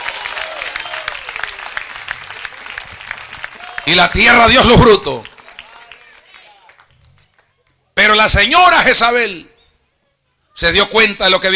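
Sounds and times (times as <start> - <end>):
audience applause: 0.0 - 7.8
speech: 3.9 - 5.3, 8.1 - 9.5, 10.6 - 11.5.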